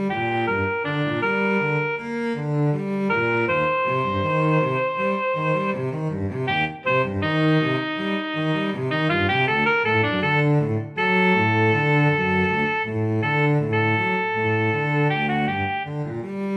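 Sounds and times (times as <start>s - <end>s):
MIDI melodica playing: 0.1s - 2.2s, 3.1s - 16.4s.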